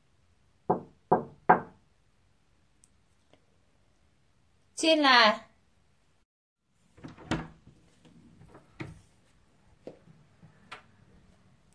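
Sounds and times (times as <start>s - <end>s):
knocking on a door: 0.7s - 1.8s
speech: 4.8s - 5.5s.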